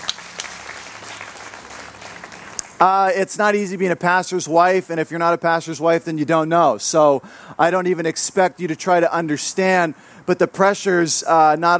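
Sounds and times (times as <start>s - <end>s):
audience clapping: 0.0s - 3.0s
speech: 2.8s - 11.7s.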